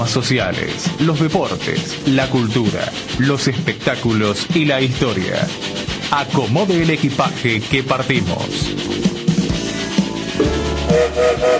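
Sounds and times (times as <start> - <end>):
speech: 0.0 - 9.1
train whistle blowing: 10.4 - 11.5.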